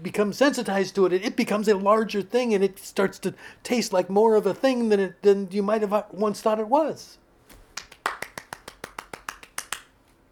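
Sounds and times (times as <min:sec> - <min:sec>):
speech: 0:00.0 - 0:07.2
applause: 0:07.8 - 0:09.9.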